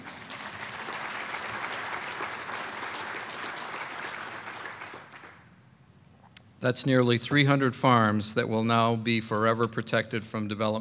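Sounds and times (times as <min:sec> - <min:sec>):
audience applause: 0:00.0 - 0:05.4
speech: 0:06.6 - 0:10.7.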